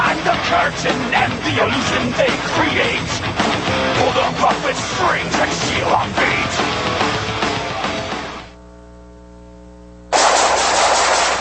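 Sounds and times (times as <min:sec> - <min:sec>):
speech: 0:00.2 - 0:07.0
steady humming tone: 0:08.1 - 0:11.3
rapid machine-gun fire: 0:10.1 - 0:11.3.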